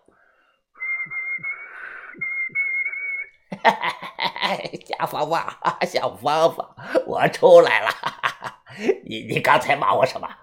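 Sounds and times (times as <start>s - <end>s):
person whistling: 0.8s - 3.4s
laughter: 3.5s - 5.8s
speech: 3.6s - 8.1s, 8.8s - 10.4s.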